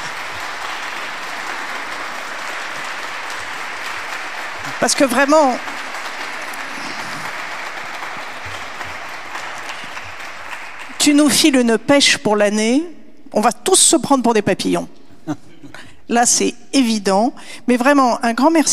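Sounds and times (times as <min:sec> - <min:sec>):
audience applauding: 0:00.0 - 0:11.4
speech: 0:04.8 - 0:05.7, 0:11.1 - 0:15.5, 0:16.1 - 0:18.7.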